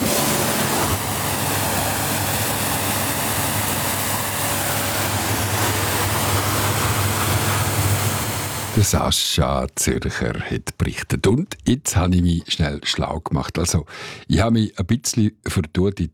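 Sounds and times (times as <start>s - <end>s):
low pump drone: 0.0s - 8.9s
powerful water jet spraying down a motorboat: 0.0s - 8.9s
speech: 8.8s - 16.1s.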